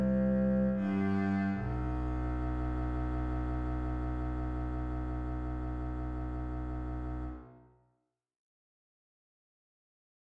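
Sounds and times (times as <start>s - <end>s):
string bass: 0.0s - 7.6s.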